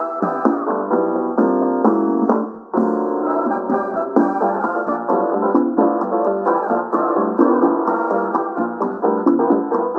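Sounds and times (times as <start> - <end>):
Latin music: 0.0 - 9.9.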